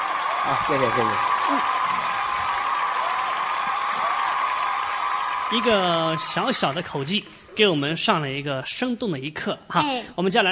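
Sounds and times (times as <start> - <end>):
audience applause: 0.0 - 7.5
speech: 0.4 - 1.8, 5.5 - 10.4.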